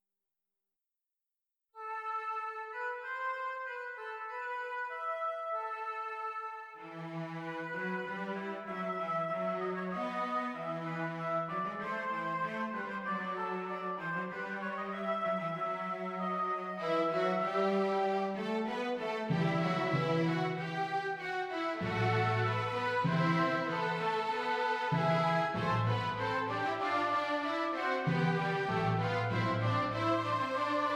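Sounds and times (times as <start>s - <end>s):
orchestral music: 1.9s - 30.9s.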